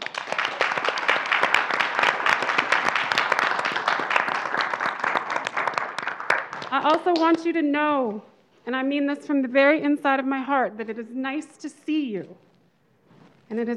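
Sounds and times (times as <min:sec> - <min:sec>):
audience applause: 0:00.0 - 0:07.3
speech: 0:06.7 - 0:12.5, 0:13.5 - 0:13.7.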